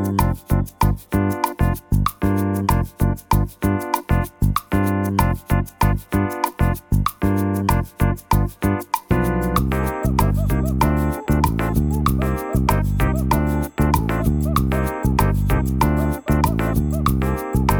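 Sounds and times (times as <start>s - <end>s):
latin partido music: 0.0s - 17.7s.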